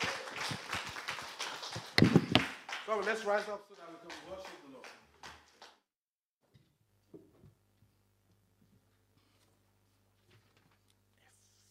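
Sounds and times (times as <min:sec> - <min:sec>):
people clapping: 0:00.0 - 0:05.9
speech: 0:02.9 - 0:04.6.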